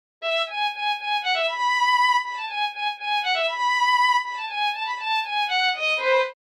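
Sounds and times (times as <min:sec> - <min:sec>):
violin: 0:00.2 - 0:06.4.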